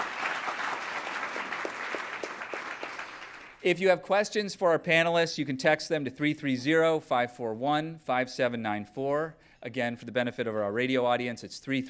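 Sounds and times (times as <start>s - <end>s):
audience round of applause: 0.0s - 3.6s
speech: 3.6s - 11.8s.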